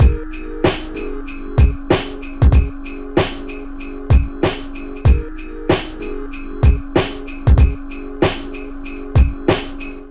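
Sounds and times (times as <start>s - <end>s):
hip hop beat: 0.0s - 10.0s.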